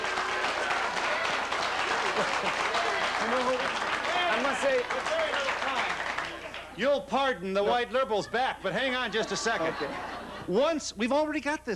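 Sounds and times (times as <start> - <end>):
audience applause: 0.0 - 6.8
laughter: 0.5 - 6.4, 7.6 - 10.7
speech: 3.2 - 3.8, 4.6 - 5.7, 6.8 - 11.7.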